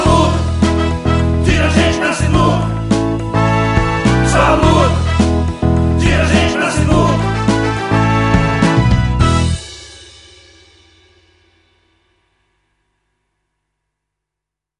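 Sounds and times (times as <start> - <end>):
graphic workers salary campaign jingle: 0.0 - 9.5.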